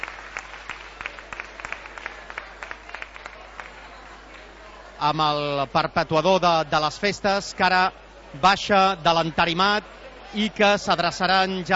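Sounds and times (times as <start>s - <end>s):
crowd applause in a town hall: 0.0s - 5.0s
speech: 5.0s - 11.7s.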